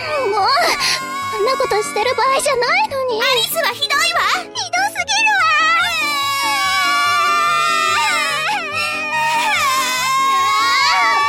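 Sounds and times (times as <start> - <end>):
child crying and sobbing: 0.0 - 3.0, 5.4 - 11.2
speech: 1.5 - 4.6.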